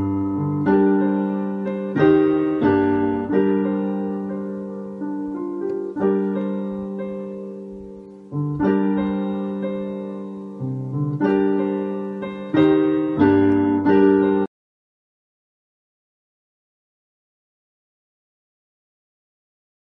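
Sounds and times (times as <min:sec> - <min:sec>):
piano: 0:00.0 - 0:14.5.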